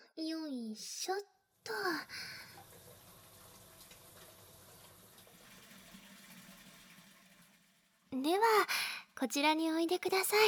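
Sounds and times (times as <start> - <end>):
speech: 0.2 - 2.4, 8.3 - 10.4
hot water running from a tap to fill a bathtub: 1.6 - 9.7.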